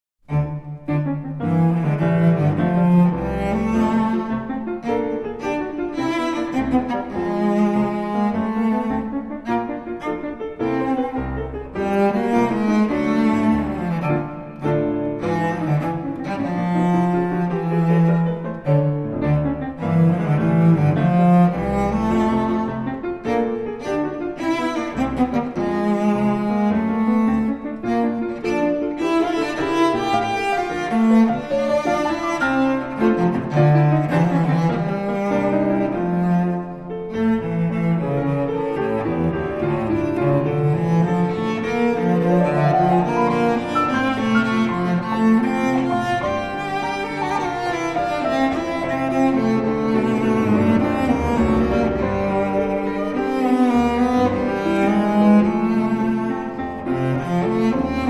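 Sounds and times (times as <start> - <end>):
Charleston-style piece for violoncello and piano: 0.2 - 58.0.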